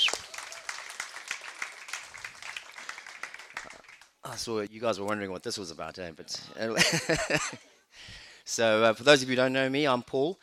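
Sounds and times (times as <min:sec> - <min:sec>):
audience applause: 0:00.0 - 0:04.2
speech: 0:04.3 - 0:10.4
laughter: 0:06.8 - 0:07.6.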